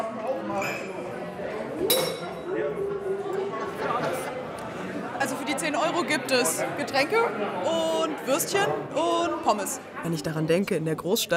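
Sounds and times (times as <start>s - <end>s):
overlapping chatter in a busy room: 0.0s - 11.3s
glasses clinking in a toast: 1.8s - 2.5s
speech: 5.9s - 11.3s.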